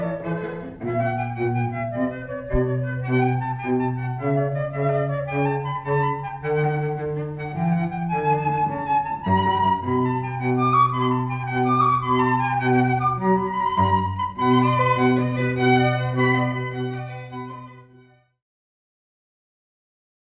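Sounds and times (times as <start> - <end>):
flute: 0.0 - 18.1
cello: 0.0 - 18.3
violin: 0.0 - 18.3.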